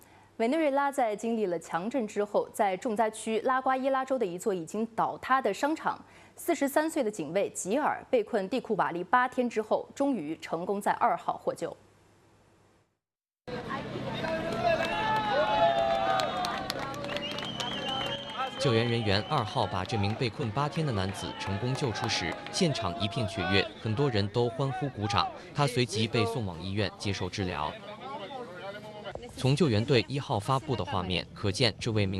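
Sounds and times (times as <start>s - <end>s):
speech: 0.4s - 11.8s, 18.6s - 27.9s, 29.4s - 32.1s
crowd cheering and clapping at a rescue: 14.0s - 24.3s.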